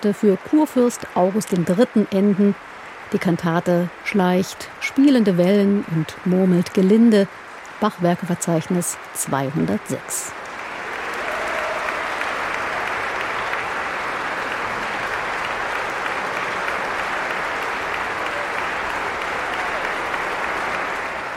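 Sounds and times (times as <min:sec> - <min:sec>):
speech: 0:00.0 - 0:10.4
audience applause in the Thomaskirche: 0:06.2 - 0:21.3.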